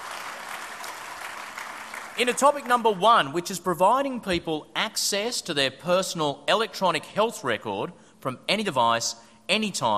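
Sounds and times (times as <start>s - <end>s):
crowd clapping: 0.0s - 3.0s
speech: 2.2s - 9.9s.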